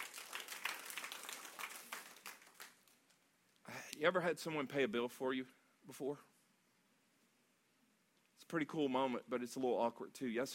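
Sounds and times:
audience clapping: 0.0 - 3.1
speech: 3.7 - 6.3, 8.5 - 10.5.

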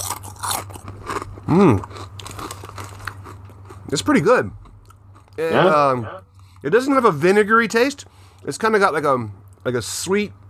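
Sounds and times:
folded potato chip being bitten and chewed: 0.0 - 5.5
speech: 1.5 - 2.0, 3.9 - 4.6, 5.4 - 10.4.

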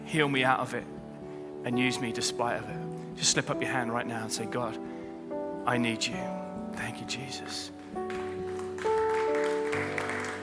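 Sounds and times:
speech: 0.1 - 1.0, 1.6 - 5.0, 5.6 - 8.2
audience clapping: 7.8 - 10.4.

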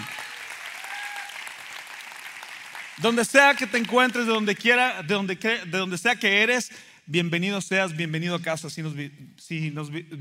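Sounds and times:
applause for visitors: 0.0 - 4.5
speech: 3.0 - 10.1.

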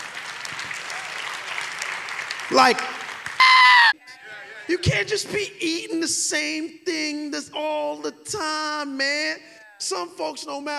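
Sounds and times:
audience clapping: 0.0 - 3.9
speech: 2.5 - 3.0, 4.7 - 10.7.

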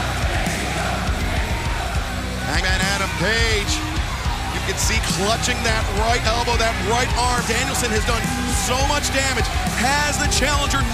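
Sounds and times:
wrestling arena crowd cheering: 0.0 - 10.9
speech: 3.2 - 3.8, 4.7 - 10.9.

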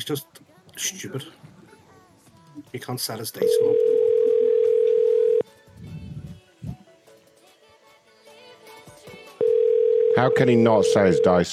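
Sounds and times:
speech: 0.0 - 1.5, 2.6 - 4.0, 10.2 - 11.5
telephone ringing tone on an outgoing call: 3.4 - 5.4, 9.4 - 11.5.

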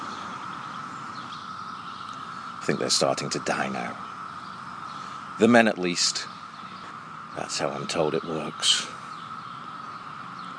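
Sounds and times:
periodical cicadas buzzing: 0.0 - 10.5
speech: 2.6 - 4.1, 5.4 - 6.4, 7.4 - 9.0.

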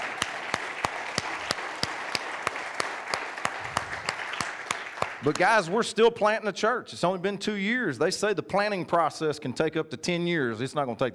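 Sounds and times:
audience applause: 0.0 - 5.5
speech: 5.2 - 11.1.

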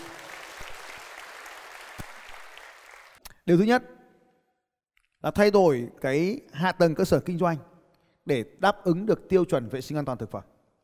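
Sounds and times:
audience applause: 0.0 - 3.2
speech: 3.5 - 4.0, 5.2 - 10.5.

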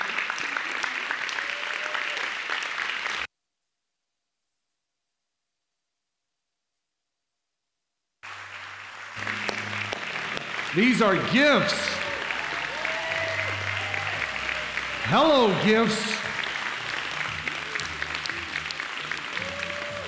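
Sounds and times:
audience clapping and cheering: 0.0 - 3.3, 8.2 - 20.0
speech: 10.8 - 12.0, 15.1 - 16.2.

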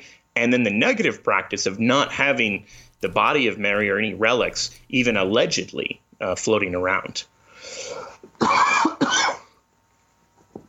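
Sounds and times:
speech: 0.0 - 8.9
person coughing or sneezing on air: 8.4 - 9.6.

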